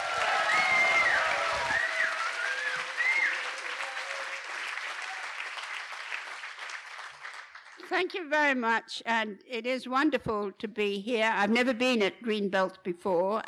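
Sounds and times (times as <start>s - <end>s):
audience applause welcoming a speaker at Greenbelt festival: 0.0s - 7.9s
speech: 8.0s - 13.4s.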